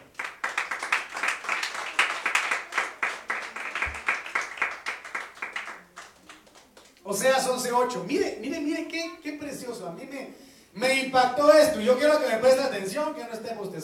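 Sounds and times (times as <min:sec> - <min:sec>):
crowd clapping: 0:00.0 - 0:07.0
speech: 0:07.1 - 0:13.8.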